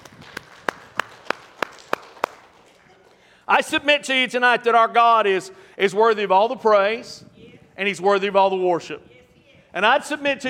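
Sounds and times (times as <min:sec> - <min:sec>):
audience hand clapping: 0:00.0 - 0:03.3
speech: 0:03.5 - 0:09.1, 0:09.7 - 0:10.4.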